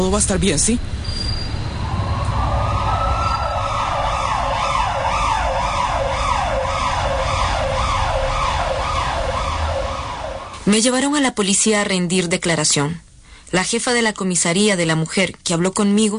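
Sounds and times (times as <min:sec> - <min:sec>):
low rumble of road traffic: 0:00.0 - 0:10.7
speech: 0:00.1 - 0:01.3, 0:10.7 - 0:16.1
ambulance siren wailing: 0:01.5 - 0:10.6.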